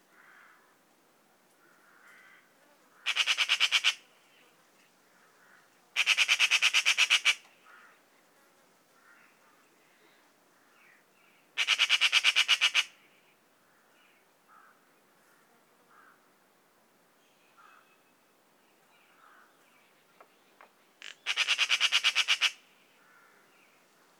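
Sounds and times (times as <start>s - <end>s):
magpie calling: 3.0s - 4.1s, 6.0s - 8.0s, 11.6s - 13.0s, 21.0s - 23.5s.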